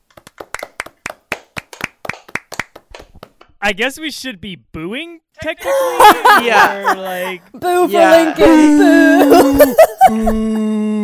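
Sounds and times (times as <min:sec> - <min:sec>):
podcast hosts clapping hands: 0:00.0 - 0:03.5
speech: 0:03.6 - 0:11.0
laughter: 0:05.4 - 0:10.7.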